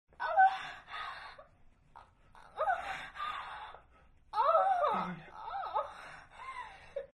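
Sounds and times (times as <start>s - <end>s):
person moaning during sex: 4.4s - 5.9s.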